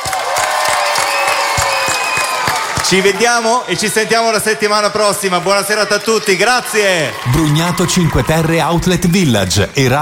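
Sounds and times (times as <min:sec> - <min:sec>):
audience applause: 0:00.0 - 0:09.9
speech: 0:02.9 - 0:09.9.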